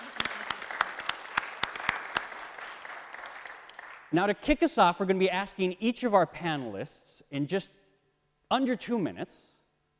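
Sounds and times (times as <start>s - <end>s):
small audience applause: 0.0s - 4.2s
speech: 4.1s - 7.8s, 8.5s - 9.5s.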